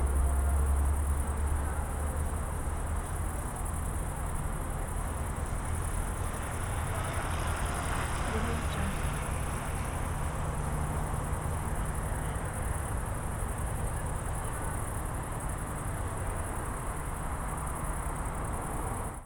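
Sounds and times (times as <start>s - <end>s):
city cycling and walking route night ambience: 0.0s - 19.2s.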